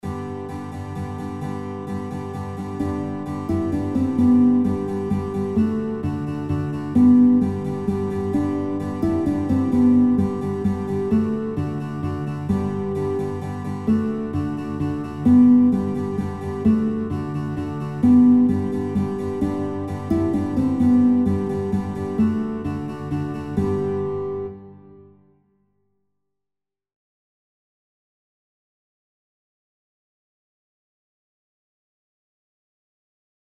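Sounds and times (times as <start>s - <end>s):
guitar: 0.0s - 25.5s.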